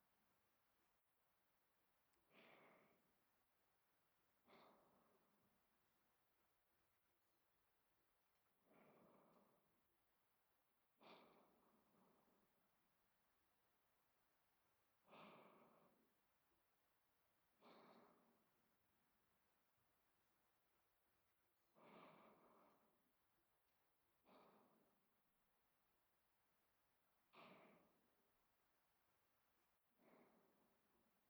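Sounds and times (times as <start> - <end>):
person breathing in sleep: 2.2 - 3.2, 4.4 - 5.4, 8.6 - 9.7, 11.0 - 12.5, 15.1 - 16.1, 17.6 - 18.4, 21.8 - 23.0, 24.2 - 25.0, 27.3 - 28.0, 30.0 - 30.8.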